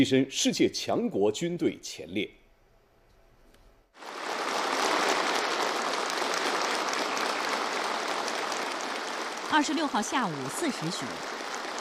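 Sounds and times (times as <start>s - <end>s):
speech: 0.0s - 2.4s, 9.5s - 11.5s
warm applause from meeting delegates at the Jingxi Hotel: 4.0s - 11.7s.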